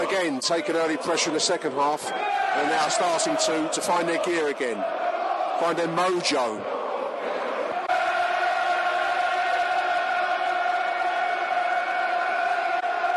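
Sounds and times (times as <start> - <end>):
stadium crowd chanting: 0.0 - 13.1
speech: 0.2 - 6.8.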